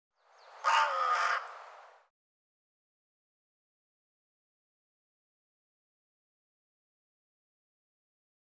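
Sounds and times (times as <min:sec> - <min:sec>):
bird giving raspy caw: 0:00.6 - 0:01.7.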